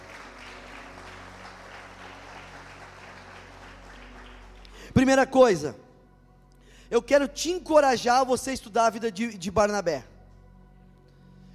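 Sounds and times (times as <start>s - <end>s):
audience applause: 0.0s - 4.8s
speech: 4.9s - 5.8s, 6.9s - 10.1s.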